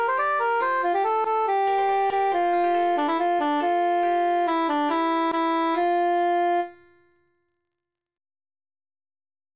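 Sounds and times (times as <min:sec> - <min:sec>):
emphasized cantus melody: 0:00.0 - 0:07.0.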